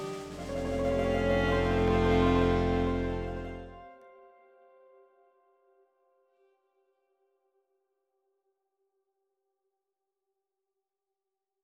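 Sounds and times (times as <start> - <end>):
South Slavic orchestral score: 0.0 - 4.1.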